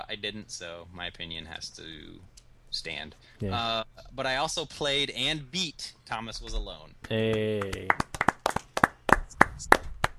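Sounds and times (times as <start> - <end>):
speech: 0.1 - 8.1
brief sparse applause hand claps: 7.0 - 10.1.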